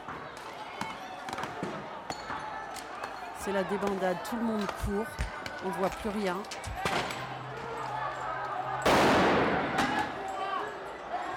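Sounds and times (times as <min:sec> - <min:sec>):
street protest crowd noise: 0:00.0 - 0:11.3
speech: 0:03.4 - 0:07.2
dispersal grenade going off during a street protest: 0:08.8 - 0:10.2.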